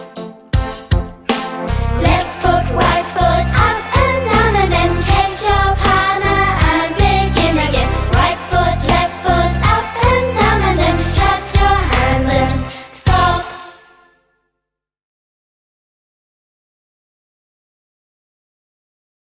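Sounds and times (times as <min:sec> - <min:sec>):
Scottish dance music: 0:00.6 - 0:14.1.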